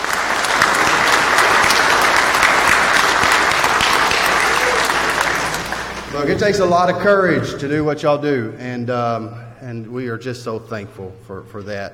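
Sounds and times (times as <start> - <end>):
audience round of applause: 0.0 - 6.8
speech: 6.3 - 11.9.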